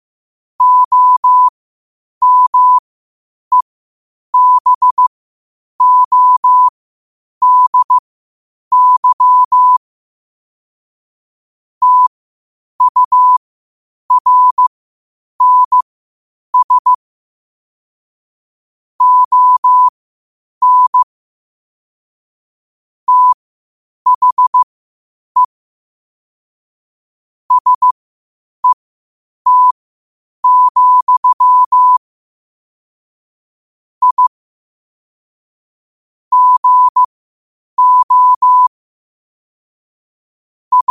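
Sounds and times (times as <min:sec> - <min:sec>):
morse code at 5 wpm: 0:00.6 - 0:01.5, 0:02.2 - 0:02.8, 0:04.4 - 0:05.1, 0:05.8 - 0:06.7, 0:07.4 - 0:08.0, 0:08.7 - 0:09.8, 0:11.8 - 0:12.1, 0:12.8 - 0:13.4, 0:14.1 - 0:14.7, 0:15.4 - 0:15.8, 0:16.6 - 0:17.0, 0:19.0 - 0:19.9, 0:20.6 - 0:21.0, 0:23.1 - 0:23.4, 0:24.1 - 0:24.7, 0:27.5 - 0:28.0, 0:29.5 - 0:29.8, 0:30.4 - 0:32.0, 0:34.0 - 0:34.3, 0:36.3 - 0:37.1, 0:37.8 - 0:38.7.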